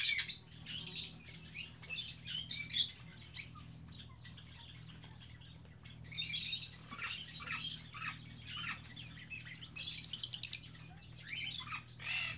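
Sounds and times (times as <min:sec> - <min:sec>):
birds chirping in an aviary on Spetses: 0:00.0 - 0:12.3.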